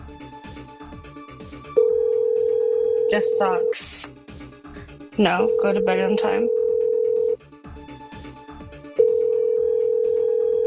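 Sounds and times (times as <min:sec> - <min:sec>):
telephone ringing tone on an outgoing call: 0:01.8 - 0:03.8, 0:05.4 - 0:07.4, 0:09.0 - 0:10.6
speech: 0:03.1 - 0:04.1, 0:05.2 - 0:06.6.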